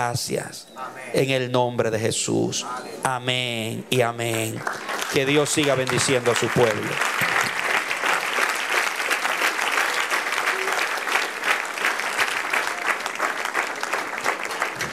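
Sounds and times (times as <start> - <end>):
speech: 0.0 - 7.2
audience applauding: 4.2 - 14.9.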